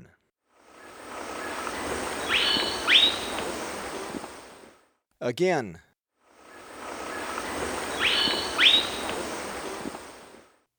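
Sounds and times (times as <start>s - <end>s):
Rufous-rumped foliage-gleaner giving sharp high squeaky notes in Ecuador: 0.8s - 4.6s, 6.5s - 10.3s.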